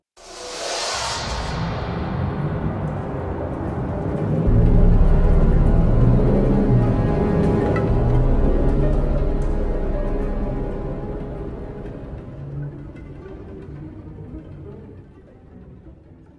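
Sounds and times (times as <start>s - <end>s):
suspense theme music: 0.2s - 16.3s.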